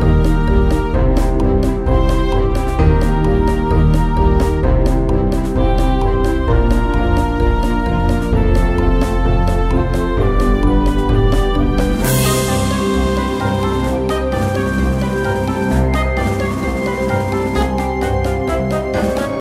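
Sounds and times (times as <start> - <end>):
soundtrack music: 0.0 - 19.4.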